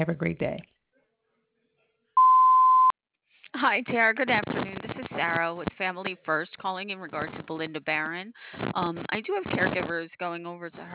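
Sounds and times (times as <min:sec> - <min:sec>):
speech: 0:00.0 - 0:00.8, 0:03.6 - 0:10.9
voicemail beep: 0:02.2 - 0:03.0.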